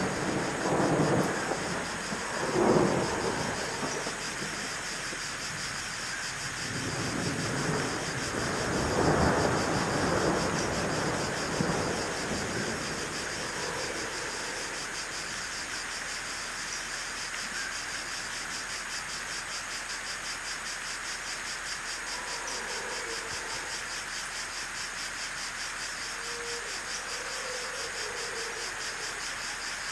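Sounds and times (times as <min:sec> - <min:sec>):
rushing hiss: 0:00.0 - 0:19.2
crickets chirping: 0:00.0 - 0:29.9.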